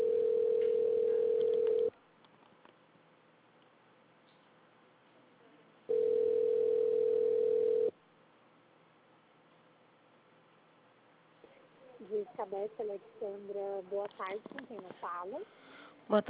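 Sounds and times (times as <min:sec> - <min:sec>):
telephone ringing tone while a call is transferred: 0:00.0 - 0:01.9, 0:05.9 - 0:07.9
speech: 0:12.5 - 0:16.2.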